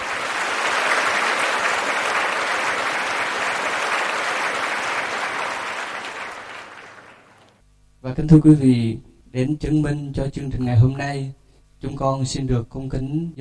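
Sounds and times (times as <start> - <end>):
crowd at a Buddhist event applauding: 0.0 - 7.5
speech: 8.2 - 13.4.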